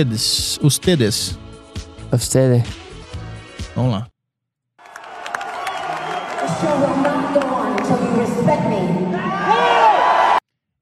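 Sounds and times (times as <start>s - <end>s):
speech: 0.0s - 1.4s, 2.1s - 2.8s, 3.8s - 4.1s
concert crowd cheering and shouting: 4.8s - 10.4s.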